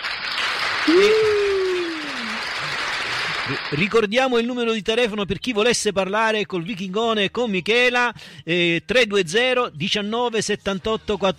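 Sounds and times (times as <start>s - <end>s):
applause: 0.0s - 4.4s
speech: 0.8s - 1.4s, 3.5s - 11.3s.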